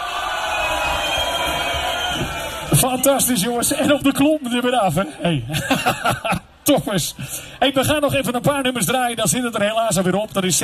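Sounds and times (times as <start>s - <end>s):
audience cheering for performers: 0.0s - 4.3s
speech: 2.8s - 10.6s
laughter: 5.2s - 6.5s.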